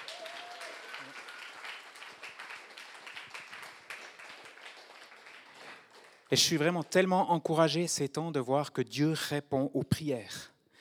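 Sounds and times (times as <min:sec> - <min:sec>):
audience applause: 0:00.0 - 0:06.3
speech: 0:06.3 - 0:10.5.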